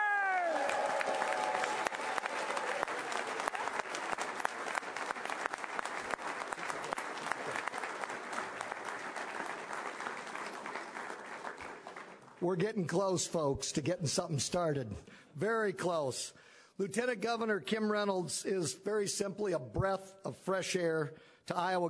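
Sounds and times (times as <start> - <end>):
large crowd clapping and cheering: 0.0 - 13.0
speech: 12.5 - 21.8.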